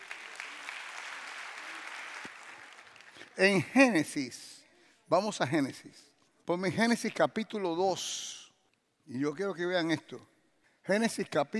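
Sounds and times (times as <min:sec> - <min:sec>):
audience applause: 0:00.0 - 0:03.2
speech: 0:03.4 - 0:04.5, 0:05.1 - 0:08.4, 0:09.1 - 0:10.3, 0:10.9 - 0:11.5.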